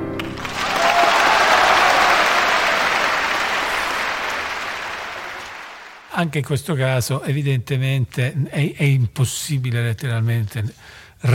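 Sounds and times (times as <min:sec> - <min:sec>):
audience applause after orchestral finale: 0:00.2 - 0:06.1
speech: 0:06.2 - 0:11.3.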